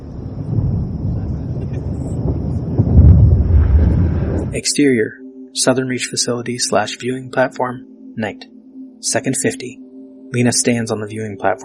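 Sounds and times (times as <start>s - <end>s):
thunder: 0.0s - 4.6s
speech: 4.6s - 11.6s.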